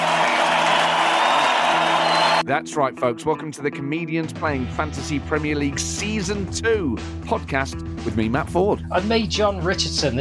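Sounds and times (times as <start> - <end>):
applause: 0.0 - 2.4
speech: 2.4 - 10.1.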